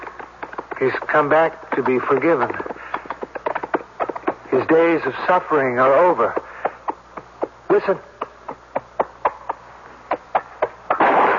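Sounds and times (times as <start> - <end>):
quick sharp thumps: 0.0 - 11.3
speech: 0.8 - 2.7, 4.7 - 6.5, 7.7 - 8.1
gunshot fired inside a house in a mystery drama: 11.0 - 11.3.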